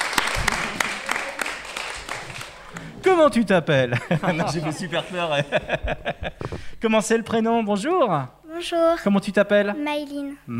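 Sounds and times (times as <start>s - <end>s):
audience clapping for a singer: 0.0s - 3.1s
laughter: 2.8s - 6.6s
speech: 3.1s - 10.5s.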